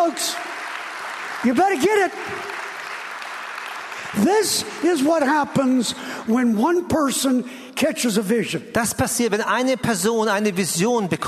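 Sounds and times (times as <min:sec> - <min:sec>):
audience applause: 0:00.0 - 0:05.4
speech: 0:01.4 - 0:02.6, 0:04.1 - 0:11.2.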